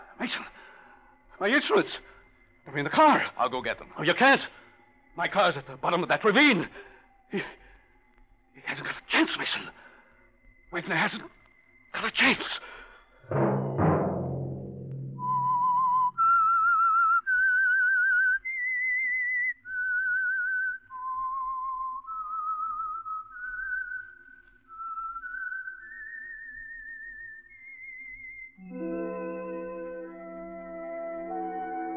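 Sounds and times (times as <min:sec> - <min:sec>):
speech: 0:00.2 - 0:00.6, 0:01.4 - 0:04.6, 0:05.2 - 0:07.6, 0:08.6 - 0:09.8, 0:10.7 - 0:13.4
whistled theme melody: 0:14.9 - 0:31.9.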